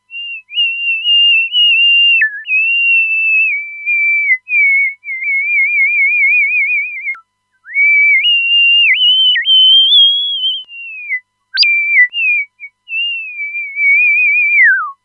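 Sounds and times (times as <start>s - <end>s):
whistle: 0.1s - 15.0s.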